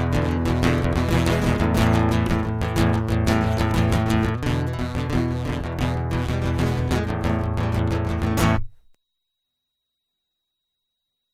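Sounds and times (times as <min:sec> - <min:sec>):
guitar prelude: 0:00.0 - 0:08.8.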